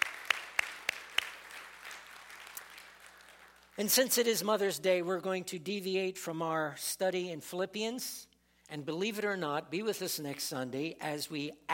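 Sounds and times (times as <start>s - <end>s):
audience applause: 0.0s - 3.7s
sharp claps: 0.0s - 3.8s
speech: 3.8s - 11.7s.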